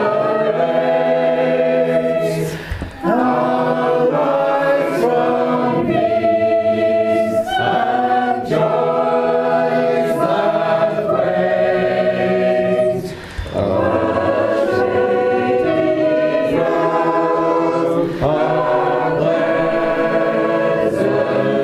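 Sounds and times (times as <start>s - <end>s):
shape note singing: 0.0s - 21.6s.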